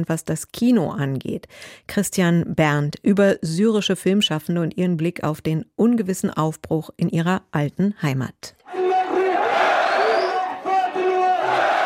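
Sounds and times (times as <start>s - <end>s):
speech: 0.0s - 8.8s
large crowd cheering, shouting and chanting: 8.6s - 11.8s.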